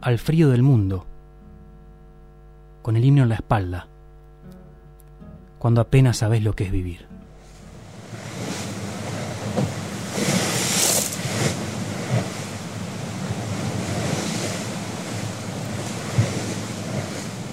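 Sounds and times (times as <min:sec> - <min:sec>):
speech: 0:00.0 - 0:01.1, 0:02.8 - 0:03.9, 0:05.6 - 0:07.1
ocean waves on the open sea: 0:07.4 - 0:17.5
gusts of wind buffeting the microphone: 0:07.8 - 0:17.5.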